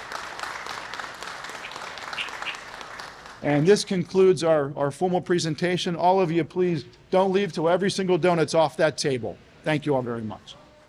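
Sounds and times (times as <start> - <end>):
audience applause: 0.0 - 3.7
speech: 3.4 - 10.6.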